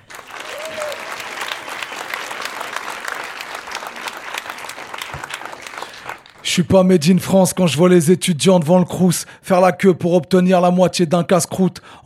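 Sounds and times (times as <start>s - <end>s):
crowd applauding: 0.0s - 6.5s
faint whistles and cheers: 0.1s - 2.4s
speech: 6.6s - 12.0s.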